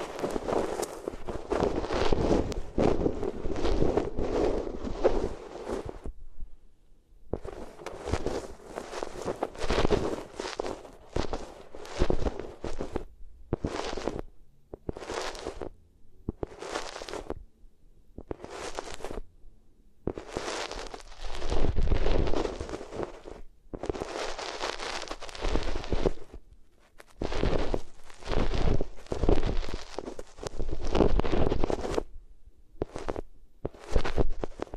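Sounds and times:
rubbing ears on different materials: 0.0s - 6.1s, 7.4s - 15.7s, 16.4s - 17.4s, 18.2s - 19.2s, 20.1s - 32.1s, 32.8s - 34.7s.

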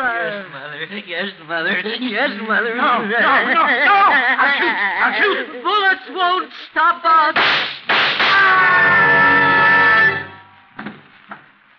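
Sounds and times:
speech: 0.0s - 7.8s
laughter: 1.7s - 6.0s
scream: 8.2s - 10.5s.

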